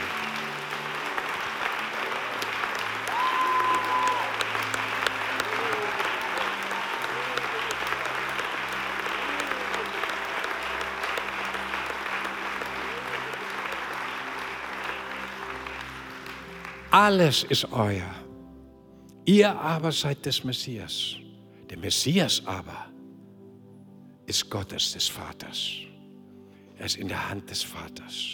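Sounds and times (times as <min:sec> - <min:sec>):
audience applause: 0:00.0 - 0:17.5
speech: 0:17.0 - 0:18.2, 0:19.2 - 0:22.9, 0:24.3 - 0:25.9, 0:26.8 - 0:28.3.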